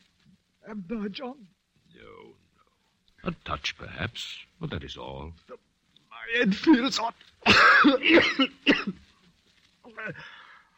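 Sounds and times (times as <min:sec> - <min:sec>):
speech: 0:00.7 - 0:02.4, 0:03.2 - 0:09.0, 0:09.9 - 0:10.4
cough: 0:07.4 - 0:09.0.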